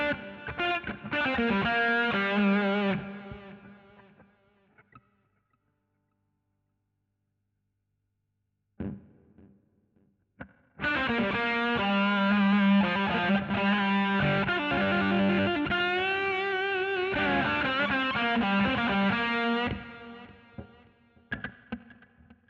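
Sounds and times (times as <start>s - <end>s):
guitar solo: 0.0s - 4.2s, 10.8s - 22.0s.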